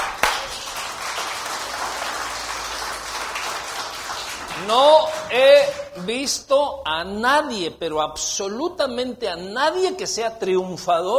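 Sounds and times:
audience applause: 0.0s - 6.0s
speech: 4.6s - 11.1s.

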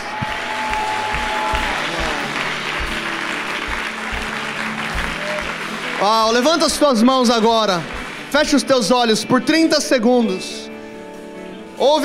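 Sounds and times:
applause: 0.0s - 9.3s
speech: 6.0s - 10.6s, 11.8s - 12.0s.

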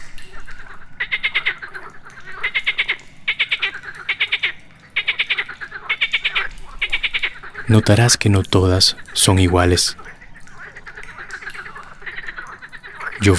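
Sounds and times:
chorus of frogs croaking: 0.0s - 13.3s
speech: 7.7s - 10.0s.

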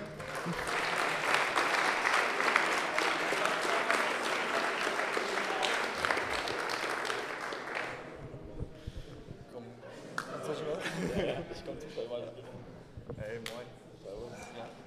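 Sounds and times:
audience applause: 0.0s - 8.2s
laughter: 9.8s - 11.9s.

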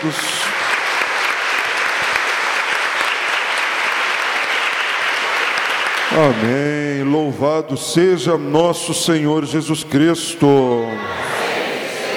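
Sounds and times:
speech: 0.0s - 0.4s, 6.1s - 11.3s
audience applauding: 0.0s - 7.2s.

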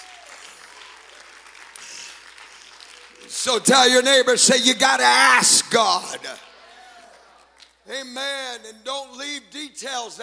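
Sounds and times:
audience clapping hands: 0.0s - 4.4s, 5.9s - 7.8s
speech: 3.2s - 6.5s, 7.9s - 10.2s.

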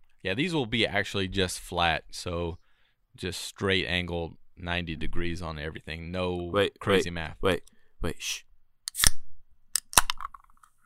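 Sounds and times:
speech: 0.2s - 2.6s, 3.2s - 9.2s
cider can cracking open with hiss and fizz: 8.9s - 9.2s, 9.8s - 10.7s.

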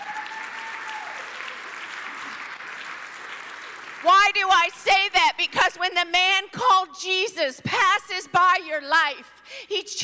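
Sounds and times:
audience applause, hand clapping: 0.0s - 4.2s
speech: 4.0s - 10.0s.

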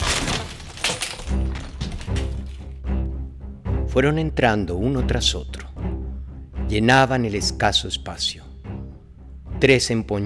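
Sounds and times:
wooden door forced open with a splintering crack: 0.0s - 2.6s
groaning creak of strained wood: 0.0s - 2.7s
speech: 4.0s - 5.6s, 6.7s - 8.4s, 9.6s - 10.2s.

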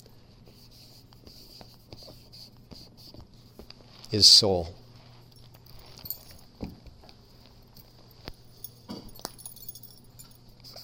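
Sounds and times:
writing on a board: 0.0s - 3.8s
steady low hum: 0.0s - 10.8s
speech: 4.1s - 4.8s.

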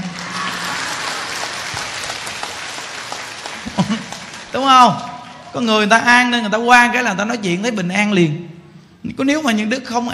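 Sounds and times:
laughter: 0.0s - 2.1s, 3.4s - 4.5s
crowd clapping: 0.0s - 5.6s
speech: 4.6s - 10.1s.

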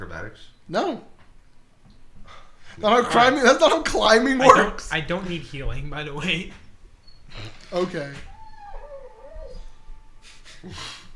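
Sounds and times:
speech: 0.0s - 1.1s, 2.3s - 6.6s, 7.3s - 8.3s, 10.6s - 11.0s
dog whimpering: 8.1s - 10.5s.

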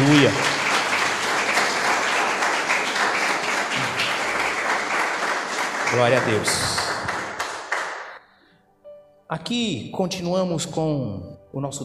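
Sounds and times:
audience applause: 0.0s - 8.2s
speech: 0.3s - 0.5s, 5.9s - 6.8s, 9.3s - 11.8s.

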